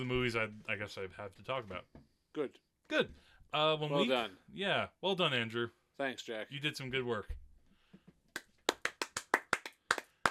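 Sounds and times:
speech: 0:00.0 - 0:07.4
hosts applauding each other: 0:08.4 - 0:10.2.

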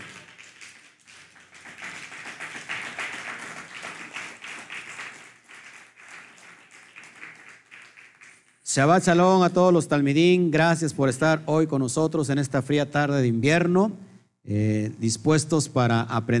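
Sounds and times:
loud audience applause: 0:00.0 - 0:08.5
speech: 0:08.7 - 0:16.3.

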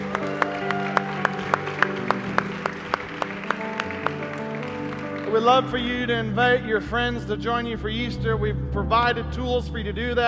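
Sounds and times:
audience clapping in rhythm in praise: 0:00.0 - 0:06.4
speech: 0:05.4 - 0:10.2.

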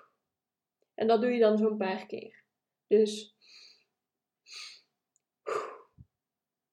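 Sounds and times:
speech: 0:01.0 - 0:03.6, 0:05.5 - 0:05.8
person breathing in deeply through the nose and out in a breathing exercise: 0:03.4 - 0:06.0.

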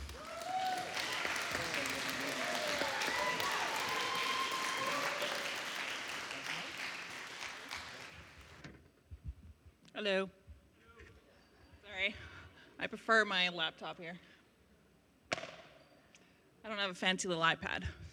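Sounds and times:
cheers and voices: 0:00.0 - 0:07.0
audience applause: 0:00.0 - 0:08.6
speech: 0:10.0 - 0:10.4, 0:12.9 - 0:14.3, 0:16.7 - 0:18.0.

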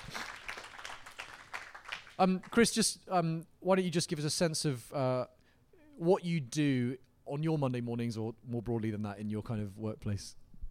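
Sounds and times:
audience round of applause: 0:00.0 - 0:02.6
speech: 0:02.2 - 0:05.4, 0:06.0 - 0:10.4.

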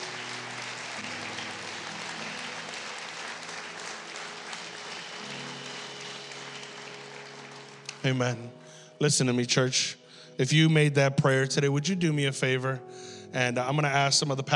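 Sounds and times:
audience applause: 0:00.0 - 0:08.4
speech: 0:08.0 - 0:14.5.

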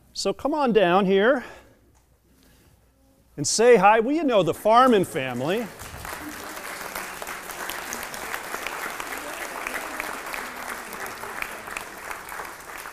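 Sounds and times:
speech: 0:00.2 - 0:01.6, 0:03.4 - 0:05.8
audience applauding: 0:04.8 - 0:12.9.

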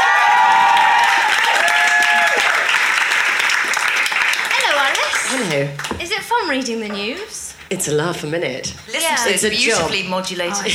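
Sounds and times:
studio audience cheers and whoops: 0:00.0 - 0:03.1
studio audience applause on a comedy panel show: 0:00.0 - 0:05.9
speech: 0:06.3 - 0:10.7.

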